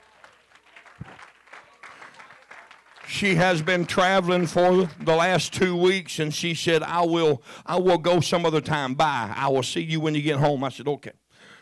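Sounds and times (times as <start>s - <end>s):
audience clapping: 0.0s - 6.4s
speech: 3.1s - 11.6s.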